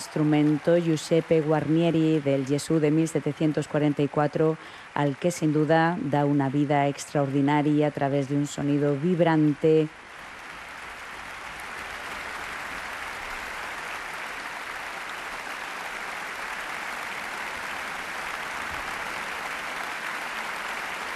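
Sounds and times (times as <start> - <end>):
concert audience applause: 0.0 - 4.4, 9.4 - 21.1
speech: 0.1 - 10.0.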